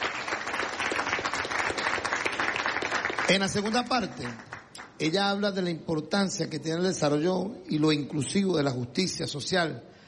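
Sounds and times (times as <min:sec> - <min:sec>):
audience applause: 0:00.0 - 0:04.8
speech: 0:03.3 - 0:09.9.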